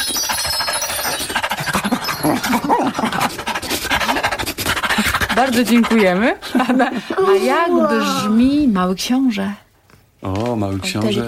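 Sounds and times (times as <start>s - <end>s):
voice imitating a dog panting: 0.0s - 6.4s
speech: 2.2s - 3.4s, 5.4s - 9.6s, 10.2s - 11.2s.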